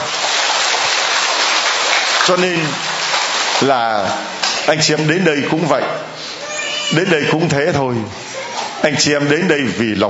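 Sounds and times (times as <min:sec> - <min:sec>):
loud round of applause: 0:00.0 - 0:03.9
speech: 0:02.3 - 0:02.9, 0:03.6 - 0:06.1, 0:06.9 - 0:08.2, 0:08.8 - 0:10.0.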